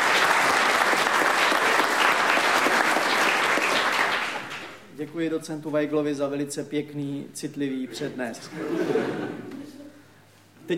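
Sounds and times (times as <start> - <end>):
audience applause: 0.0 - 4.8
speech: 5.1 - 9.6
laughter: 8.4 - 10.0.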